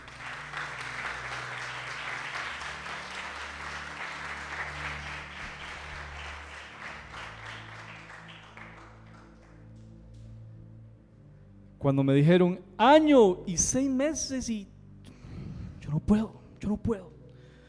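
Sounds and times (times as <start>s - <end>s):
audience applauding loudly: 0.0s - 10.2s
speech: 11.8s - 14.7s, 16.1s - 17.2s.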